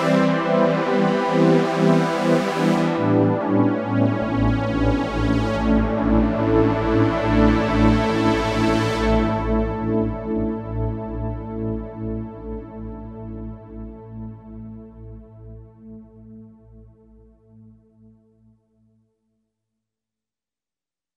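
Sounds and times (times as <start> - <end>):
early 1980s melancholic analog strings synth on an Oberheim OB-8: 0.0 - 16.4.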